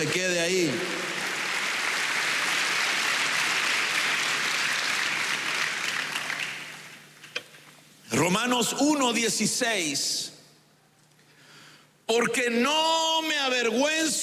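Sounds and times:
speech: 0:00.0 - 0:01.2, 0:08.3 - 0:10.3, 0:12.1 - 0:14.2
audience clapping: 0:00.0 - 0:07.1
single hand clap: 0:04.8 - 0:06.8.

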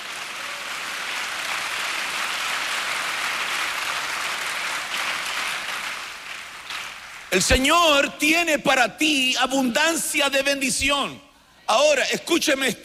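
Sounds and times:
audience applauding: 0:00.0 - 0:07.3
speech: 0:07.3 - 0:12.8.

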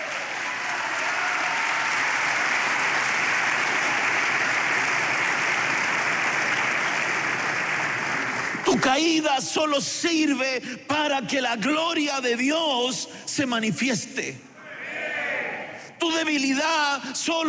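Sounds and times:
audience clapping hands: 0:00.0 - 0:09.2
speech: 0:08.8 - 0:14.5, 0:16.0 - 0:17.4.

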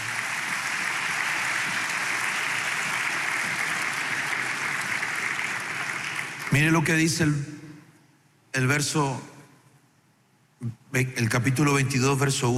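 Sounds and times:
crowd clapping: 0:00.0 - 0:07.1
speech: 0:06.5 - 0:07.6, 0:08.6 - 0:09.3, 0:10.6 - 0:12.5.

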